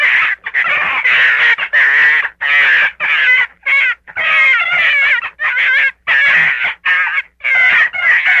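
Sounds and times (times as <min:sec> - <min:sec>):
gray fox yelping: 0:00.0 - 0:08.3.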